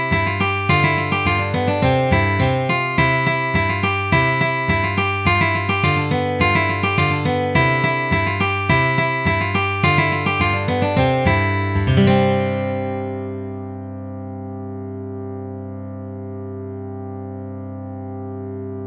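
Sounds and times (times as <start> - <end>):
polka music: 0.0 - 13.0.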